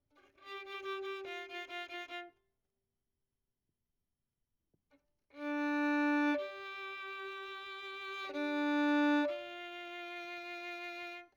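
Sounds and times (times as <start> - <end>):
violin: 0.1 - 2.4, 5.3 - 11.3.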